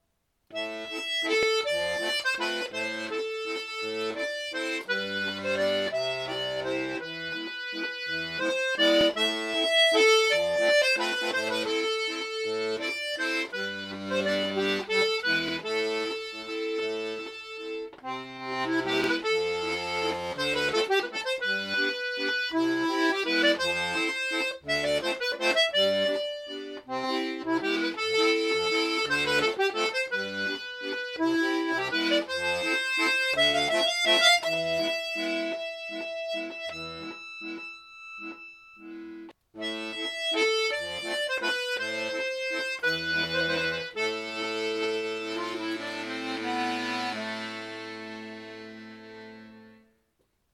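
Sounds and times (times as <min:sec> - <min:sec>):
waltz music: 0:00.6 - 0:49.8.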